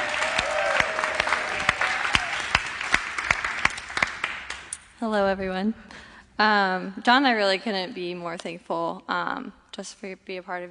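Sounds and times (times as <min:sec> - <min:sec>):
church congregation applauding to welcome a new staff member: 0:00.0 - 0:04.8
speech: 0:05.0 - 0:10.6.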